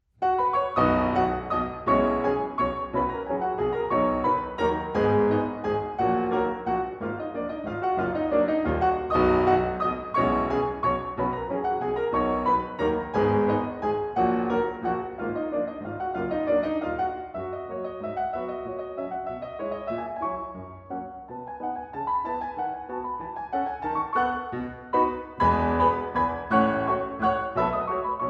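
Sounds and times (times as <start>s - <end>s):
waltz for piano four hands in B major: 0.2s - 28.2s.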